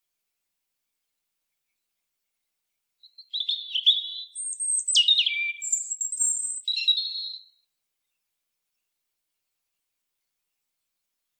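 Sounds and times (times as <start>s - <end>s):
European robin song: 3.0s - 8.9s.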